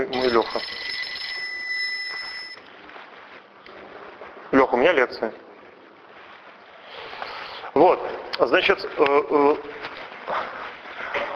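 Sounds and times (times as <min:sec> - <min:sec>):
speech: 0:00.0 - 0:00.9, 0:04.8 - 0:05.4, 0:07.8 - 0:09.8
phone ringing with high-pitched electronic trill: 0:00.1 - 0:02.7.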